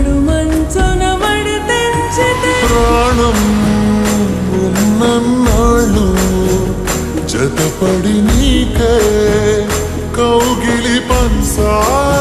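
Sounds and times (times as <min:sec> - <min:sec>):
slowed reverb love song ringtone: 0:00.2 - 0:12.2.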